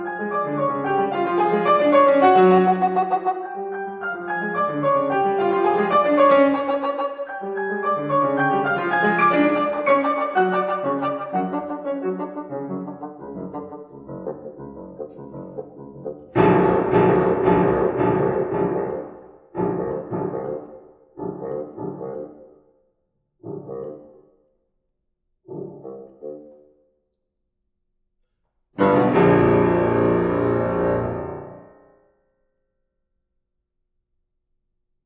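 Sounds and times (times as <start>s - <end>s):
piano in a duet with bassoon: 0.0s - 14.6s, 16.3s - 22.0s, 28.8s - 32.0s
bassoon in a duet with piano: 1.1s - 21.5s, 28.8s - 31.8s.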